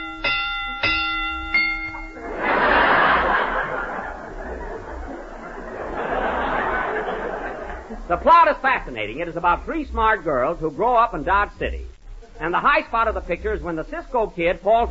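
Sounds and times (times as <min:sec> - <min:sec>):
bell ringing: 0:00.0 - 0:03.2
audience laughter: 0:02.2 - 0:08.2
speech: 0:08.2 - 0:14.8.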